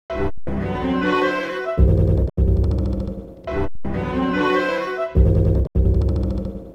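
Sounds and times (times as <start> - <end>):
serious strings: 0.1 - 6.7.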